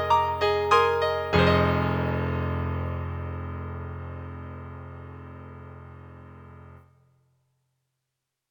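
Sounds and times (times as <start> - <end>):
acoustic grand piano on an E-MU sampler: 0.0 - 6.8.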